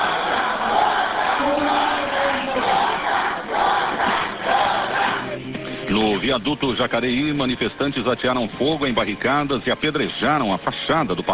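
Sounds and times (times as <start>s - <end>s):
crowd shouting in assembly galleries: 0.0s - 5.4s
speech: 6.3s - 11.3s.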